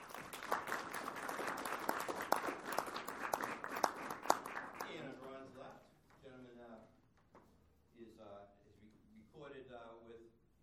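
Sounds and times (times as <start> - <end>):
audience applause: 0.0 - 5.2.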